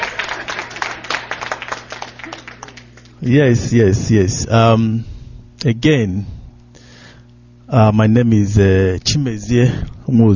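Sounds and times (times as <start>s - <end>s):
crowd applause: 0.0s - 3.2s
low constant electrical hum: 0.0s - 10.3s
speech: 3.2s - 6.4s, 7.7s - 10.3s.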